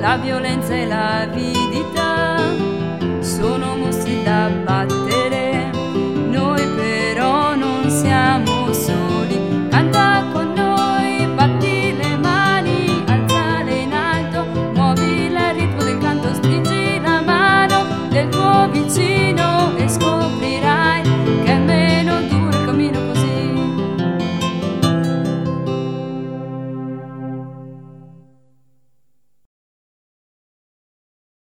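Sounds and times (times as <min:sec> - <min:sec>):
song with arpeggio: 0:00.7 - 0:28.6.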